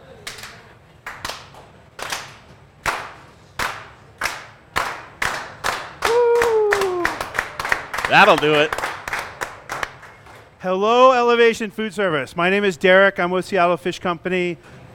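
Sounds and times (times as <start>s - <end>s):
audience slow clapping: 0.3s - 10.5s
speech: 8.1s - 8.8s, 10.6s - 14.8s.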